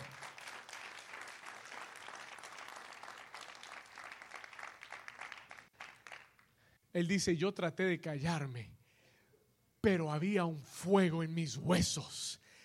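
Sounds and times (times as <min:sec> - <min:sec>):
audience applauding loudly: 0:00.0 - 0:06.5
speech: 0:07.0 - 0:08.8, 0:09.8 - 0:12.4.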